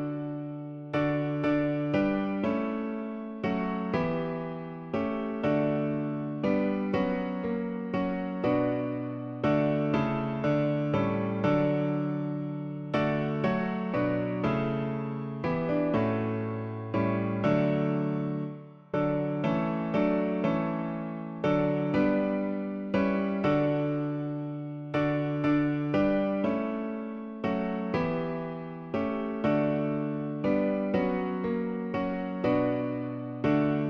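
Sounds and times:
piano version of a song: 0.0 - 33.8.

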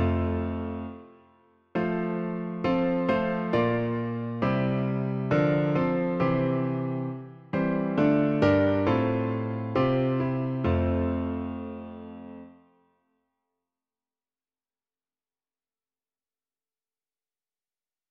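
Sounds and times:
hymn played on piano: 0.0 - 1.2, 1.8 - 12.6.

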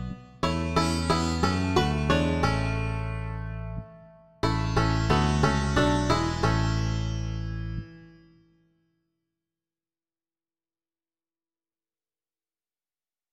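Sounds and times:
bass guitar: 0.0 - 8.0
banjo: 0.0 - 8.2
sitar: 0.0 - 8.8.

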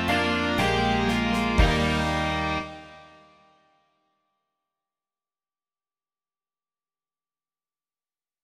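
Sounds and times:
rock music: 0.0 - 3.5.

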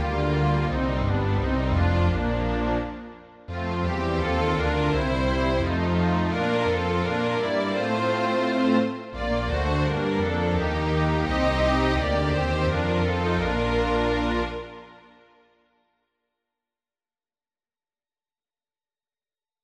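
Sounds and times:
string orchestra: 0.0 - 15.4.

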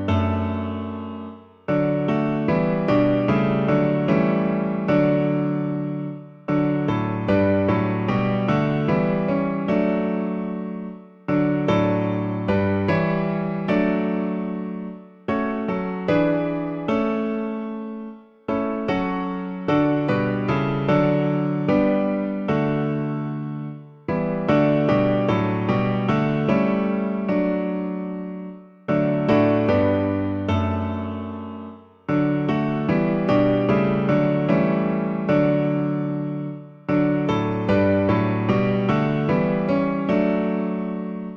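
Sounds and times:
piano version of a hymn: 0.0 - 41.3.

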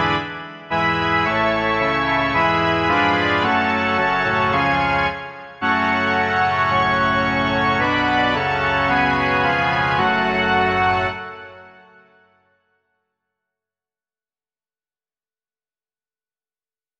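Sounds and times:
organ: 0.0 - 12.3.

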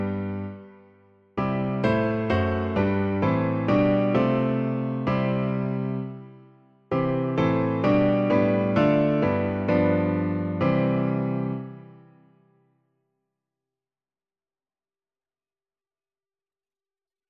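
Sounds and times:
hymn played on piano: 0.0 - 12.5.

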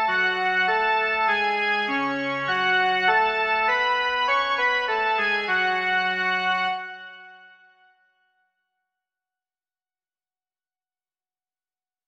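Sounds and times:
melody: 0.1 - 6.9.

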